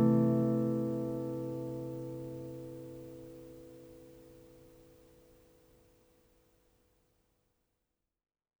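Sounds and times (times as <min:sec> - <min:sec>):
easy solo guitar: 0:00.0 - 0:04.2.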